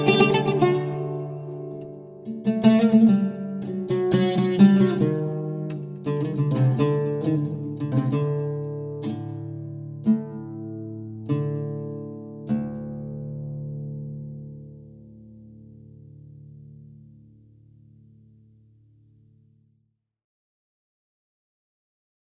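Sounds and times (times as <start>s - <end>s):
oud playing: 0.0s - 17.2s.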